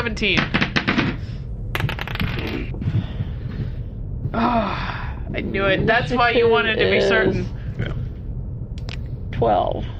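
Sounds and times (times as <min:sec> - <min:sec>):
steady low rumble: 0:00.0 - 0:09.9
speech: 0:00.1 - 0:00.7, 0:04.4 - 0:08.0, 0:09.4 - 0:09.9
dice clattering across a hard surface: 0:01.8 - 0:02.7.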